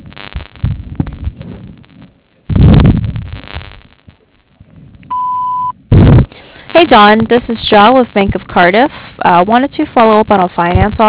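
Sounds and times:
low thumping and rumbling: 0.0 - 8.6, 10.6 - 11.0
voicemail beep: 5.1 - 5.8
speech: 6.8 - 11.0.

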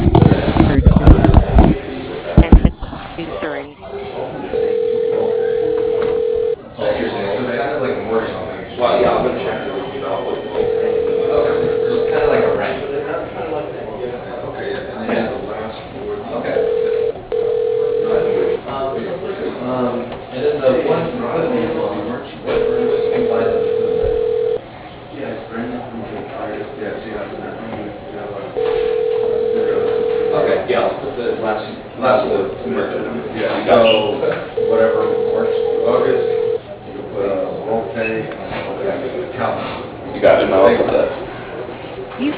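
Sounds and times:
busy sound: 0.0 - 42.3
telephone line ringing tone after extension dialed: 4.5 - 6.6, 10.5 - 12.7, 16.5 - 18.6, 22.5 - 24.6, 28.6 - 30.7, 34.6 - 36.6.

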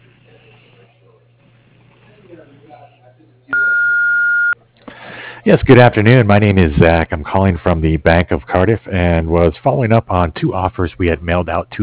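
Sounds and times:
speech: 2.3 - 4.2, 5.4 - 11.8
answering machine beep tone: 3.5 - 4.6.

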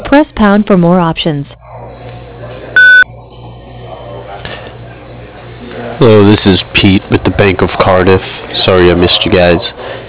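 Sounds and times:
speech: 0.1 - 1.6, 6.0 - 10.0
voicemail beep tone: 2.8 - 3.1.

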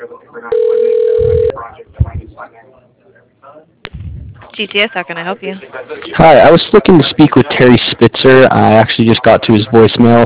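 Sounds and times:
telephone ringing while a call is transferred to an operator: 0.5 - 1.6
speech: 4.6 - 10.2.

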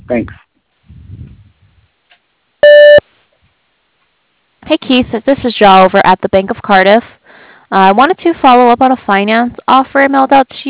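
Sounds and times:
speech: 0.1 - 0.4, 4.7 - 10.6
voicemail recording beep tone: 2.6 - 3.0.

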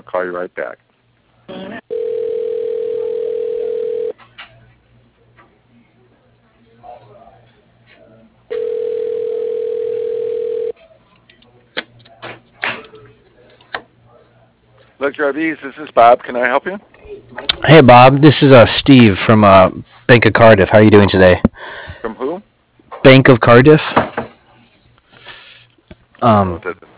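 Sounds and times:
speech: 0.1 - 0.9, 15.1 - 24.0, 26.2 - 26.9
telephone call transfer tones: 1.9 - 4.2, 8.5 - 10.7.

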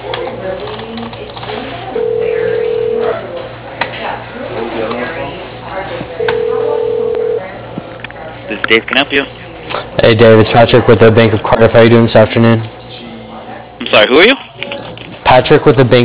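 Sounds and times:
telephone line ring tones during a call transfer: 2.0 - 3.2, 6.2 - 7.5
speech: 8.7 - 9.4, 10.0 - 12.8, 14.0 - 14.5, 15.3 - 16.0.

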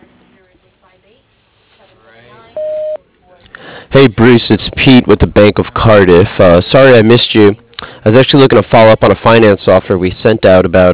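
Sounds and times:
voicemail beep tone: 2.6 - 3.0
speech: 3.9 - 10.9.

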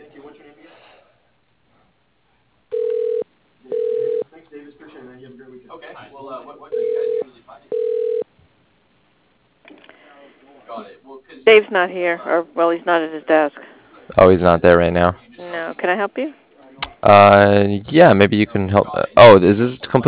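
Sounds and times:
telephone ringing while a call is transferred: 2.7 - 4.3, 6.7 - 8.3
speech: 11.5 - 16.4, 17.0 - 20.0.

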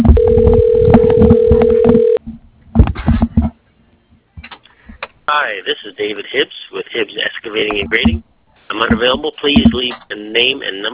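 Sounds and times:
outgoing phone call ringing: 0.2 - 2.2
speech: 5.6 - 10.9.

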